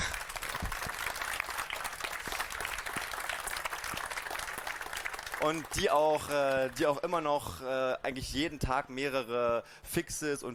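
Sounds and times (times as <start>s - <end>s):
audience applause: 0.0s - 7.0s
speech: 5.4s - 10.5s.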